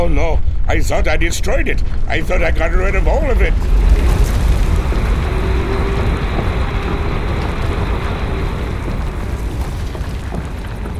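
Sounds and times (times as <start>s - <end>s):
speech: 0.0s - 4.2s
subterranean vehicle with a drill bit rumbling: 2.8s - 10.9s.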